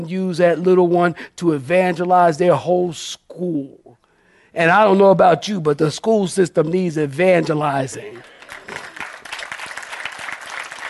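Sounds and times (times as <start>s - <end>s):
speech: 0.0s - 3.8s, 4.5s - 8.8s
audience clapping in church: 8.0s - 10.8s.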